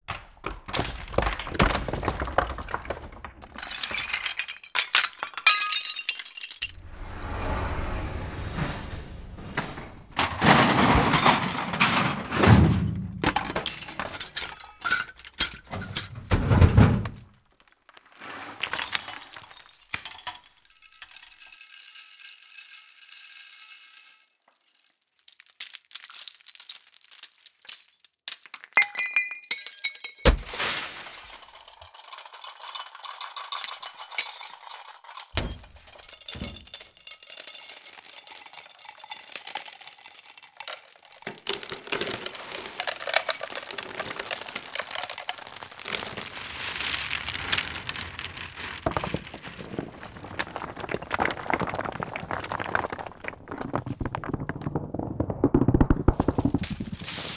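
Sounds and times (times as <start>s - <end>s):
raw destruction zone sounds: 0.1s - 21.6s, 30.3s - 32.0s, 33.9s - 57.3s.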